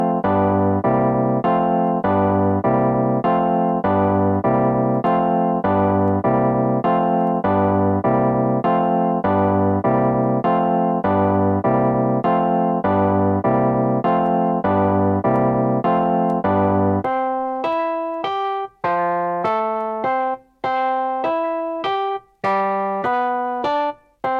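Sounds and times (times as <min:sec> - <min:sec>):
Rhodes electric piano: 0:00.0 - 0:24.3.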